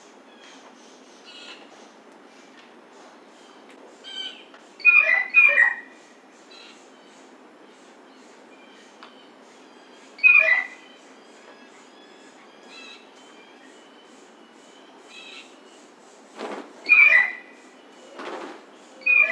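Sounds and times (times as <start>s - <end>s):
blue jay calls: 0.3s - 2.0s, 3.0s - 19.2s.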